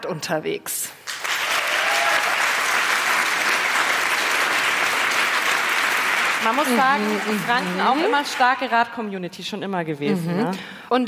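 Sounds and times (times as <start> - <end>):
speech: 0.0 - 1.1, 6.4 - 11.0
audience clapping: 1.0 - 9.0.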